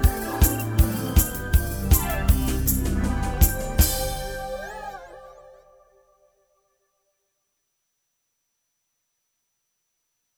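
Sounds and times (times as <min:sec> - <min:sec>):
instrumental music: 0:00.0 - 0:05.7.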